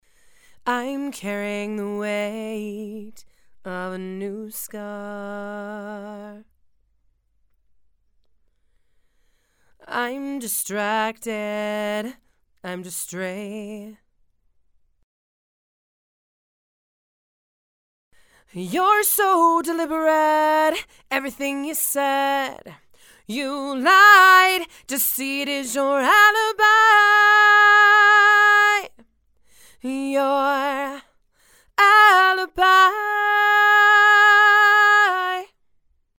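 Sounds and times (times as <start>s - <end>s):
female vocals: 0.6s - 6.5s, 9.8s - 14.0s, 18.5s - 29.1s, 29.8s - 35.6s.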